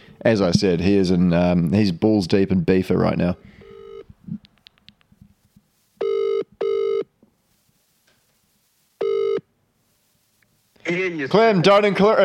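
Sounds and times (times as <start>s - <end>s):
speech: 0.2s - 3.6s, 11.2s - 12.2s
outgoing phone call ringing tone: 3.6s - 4.1s, 6.0s - 7.1s, 9.0s - 9.5s.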